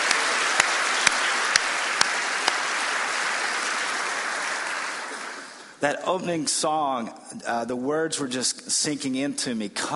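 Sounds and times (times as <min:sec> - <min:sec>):
audience clapping for the band: 0:00.0 - 0:05.8
speech: 0:05.8 - 0:09.9.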